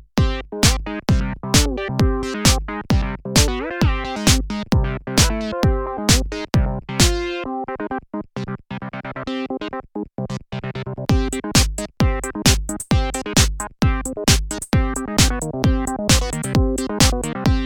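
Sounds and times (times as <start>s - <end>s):
Prophet 08 synthesizer: 0.2s - 17.6s.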